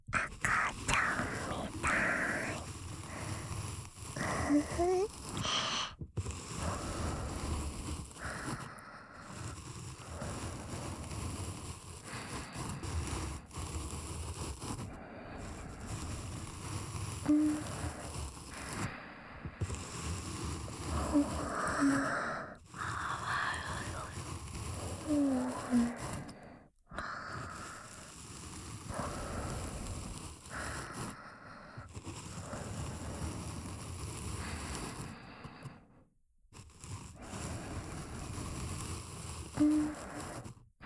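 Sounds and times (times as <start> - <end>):
ear cleaning sounds in the left ear: 0.0 - 26.4, 27.0 - 35.1, 36.9 - 40.8
kissing sounds on the left ear: 0.2 - 2.6.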